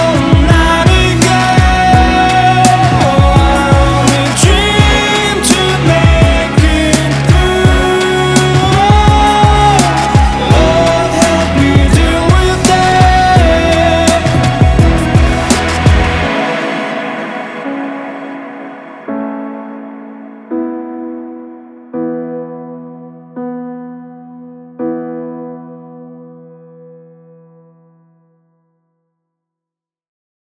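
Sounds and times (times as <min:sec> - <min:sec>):
synthpop indie pop music: 0:00.0 - 0:23.5.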